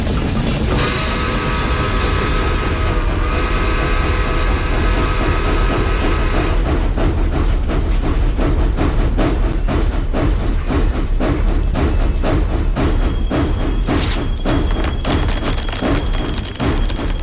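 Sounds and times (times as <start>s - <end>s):
train rumbling on rails: 0.0s - 17.2s
wheels clacking over track joints: 5.0s - 17.2s
high screeching whine: 13.7s - 17.2s.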